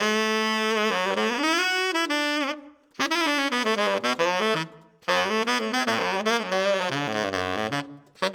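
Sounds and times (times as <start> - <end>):
saxophone: 0.0 - 8.3.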